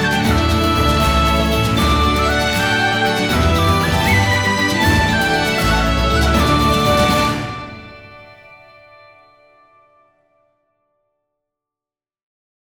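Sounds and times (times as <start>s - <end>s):
slip jig tune: 0.0s - 8.4s.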